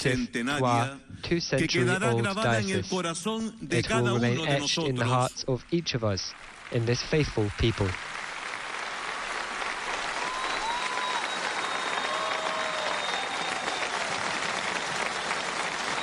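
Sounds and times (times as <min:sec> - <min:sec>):
speech: 0:00.0 - 0:08.2
crowd applauding: 0:06.2 - 0:16.0
faint whistles and cheers: 0:10.0 - 0:16.0.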